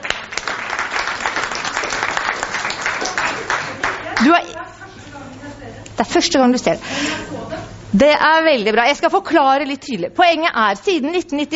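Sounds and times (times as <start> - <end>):
audience clapping: 0.0 - 4.6
speech: 4.2 - 4.6, 6.0 - 7.3, 7.9 - 11.5.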